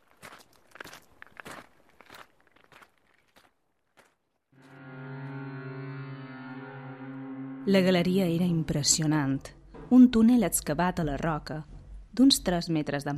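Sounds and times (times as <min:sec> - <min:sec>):
footsteps walking: 0:00.0 - 0:04.8
speech: 0:07.7 - 0:13.1.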